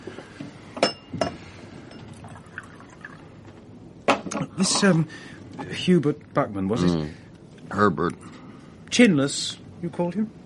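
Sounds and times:
glass clinks: 0:00.8 - 0:02.1
drink poured into a glass: 0:02.0 - 0:03.5
speech: 0:04.6 - 0:10.4.

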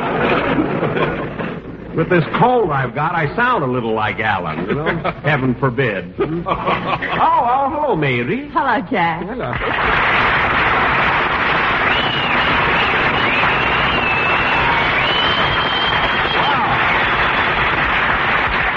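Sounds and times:
laughter: 0:00.0 - 0:02.2, 0:04.4 - 0:07.6
speech: 0:02.0 - 0:10.2
audience applause: 0:09.5 - 0:18.7.

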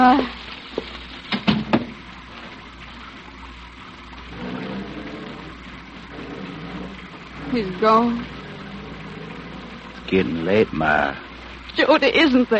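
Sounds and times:
speech: 0:00.0 - 0:00.4, 0:07.6 - 0:08.4, 0:10.1 - 0:11.2, 0:11.8 - 0:12.5
steady rain: 0:00.0 - 0:12.5
thumps and knocks: 0:00.8 - 0:02.0.

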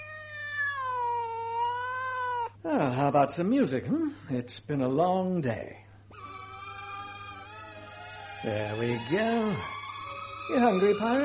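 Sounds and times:
cat meowing: 0:00.0 - 0:02.6, 0:06.1 - 0:09.7
speech: 0:02.6 - 0:05.9, 0:08.4 - 0:09.8, 0:10.5 - 0:11.2.

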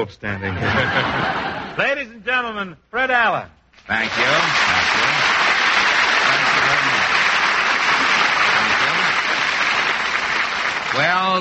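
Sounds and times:
speech: 0:00.0 - 0:05.2, 0:11.0 - 0:11.3
laughter: 0:00.4 - 0:01.8
studio audience applause: 0:03.9 - 0:11.3.

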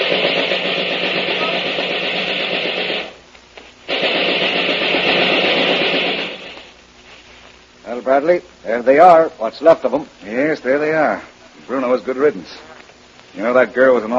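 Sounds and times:
gunfire: 0:00.0 - 0:03.2, 0:03.9 - 0:06.7
speech: 0:08.2 - 0:12.7, 0:13.3 - 0:14.1.

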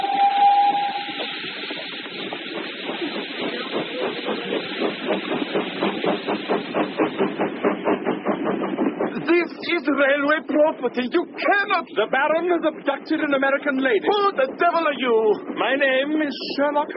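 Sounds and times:
short high steam locomotive whistle: 0:00.0 - 0:01.5
steam locomotive chugging at full speed: 0:00.0 - 0:16.9
speech: 0:10.0 - 0:16.9.

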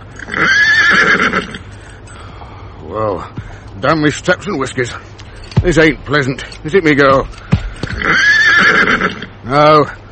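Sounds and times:
vixenish little mare whinnying: 0:00.1 - 0:01.7, 0:07.5 - 0:09.4
speech: 0:02.9 - 0:08.3, 0:09.5 - 0:10.0.

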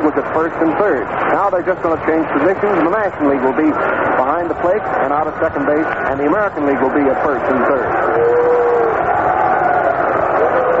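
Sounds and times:
speech: 0:00.3 - 0:08.4
stadium crowd roaring: 0:02.8 - 0:10.7.

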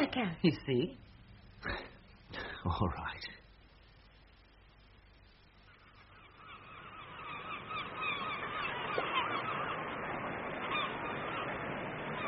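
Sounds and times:
speech: 0:00.2 - 0:03.4
crowd of birds calling and honking by the sea: 0:05.6 - 0:12.2.

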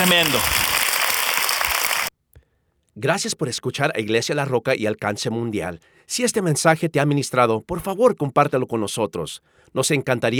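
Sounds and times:
speech: 0:00.0 - 0:00.7, 0:03.0 - 0:10.3
audience applause: 0:00.0 - 0:02.1.

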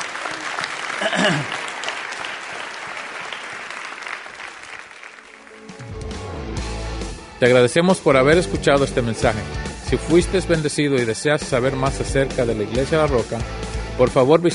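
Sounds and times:
audience applauding: 0:00.0 - 0:06.0
speech: 0:01.0 - 0:01.6, 0:07.4 - 0:14.5.

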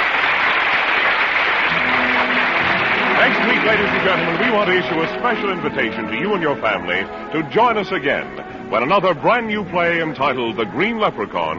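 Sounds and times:
theater audience applauding at the final curtain in a small theater off Times Square: 0:00.0 - 0:07.1
speech: 0:03.6 - 0:11.5.

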